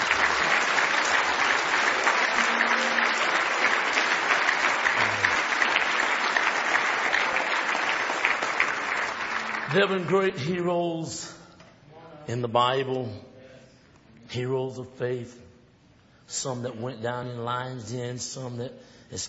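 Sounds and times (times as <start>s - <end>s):
audience applause: 0.0s - 10.1s
speech: 9.7s - 11.4s, 12.3s - 13.3s, 14.3s - 15.4s, 16.3s - 19.2s.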